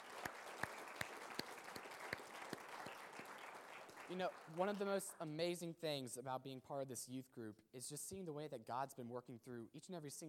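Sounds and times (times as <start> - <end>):
audience applause: 0.0 - 5.2
speech: 4.1 - 10.2.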